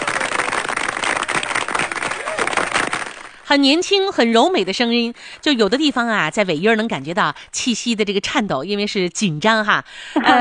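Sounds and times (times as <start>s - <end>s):
applause from a small group: 0.0s - 3.4s
speech: 3.5s - 10.3s.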